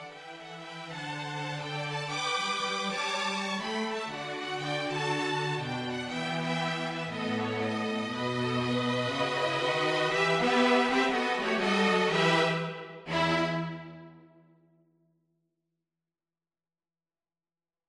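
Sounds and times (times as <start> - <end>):
string quartet playing jazz arrangement: 0.0 - 14.1.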